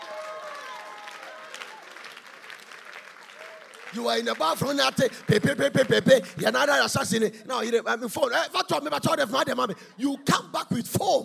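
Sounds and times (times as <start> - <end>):
audience clapping: 0.0 - 6.9
speech: 3.9 - 11.2.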